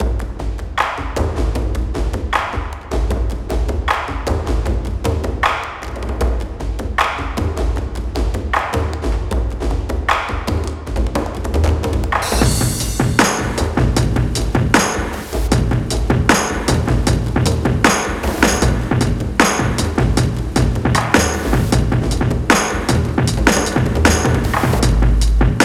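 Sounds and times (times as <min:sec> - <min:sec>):
drums: 0:00.0 - 0:25.6.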